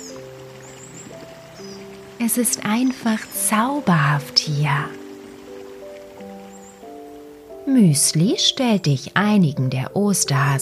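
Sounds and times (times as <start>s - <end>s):
gentle sustained musical tones: 0.0s - 10.6s
stream bubbling through a valley: 0.0s - 10.6s
speech: 2.2s - 5.0s, 7.7s - 10.6s.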